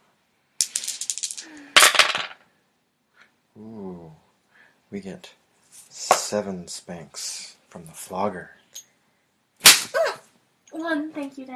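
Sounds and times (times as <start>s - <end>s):
dice clattering and tumbling across a hard surface: 0.6s - 2.5s
speech: 3.6s - 4.2s, 4.9s - 5.4s, 6.0s - 8.6s, 10.7s - 11.5s.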